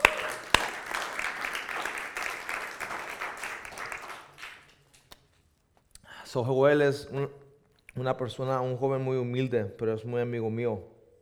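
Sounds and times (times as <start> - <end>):
audience applause: 0.0 - 5.2
speech: 6.3 - 7.4, 8.0 - 11.0.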